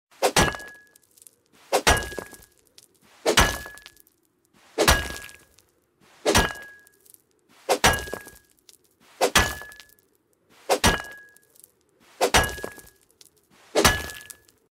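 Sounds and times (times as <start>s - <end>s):
mattock striking: 0.2s - 1.0s, 1.6s - 2.5s, 3.2s - 4.0s, 4.7s - 5.5s, 6.2s - 6.9s, 7.6s - 8.4s, 9.1s - 10.0s, 10.6s - 11.4s, 12.1s - 13.0s, 13.6s - 14.5s.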